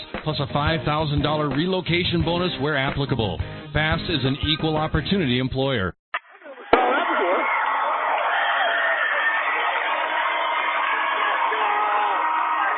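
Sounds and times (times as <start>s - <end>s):
speech: 0.2s - 6.0s
noisy crowd at the Bob Devaney Center in Lincoln: 6.3s - 12.7s.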